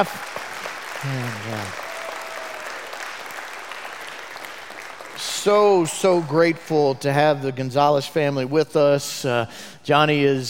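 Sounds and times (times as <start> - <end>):
speech: 0.0 - 0.3, 1.0 - 1.8, 5.2 - 10.4
voice rising above clapping: 0.0 - 5.2
church congregation applauding to welcome new staff: 0.0 - 6.8.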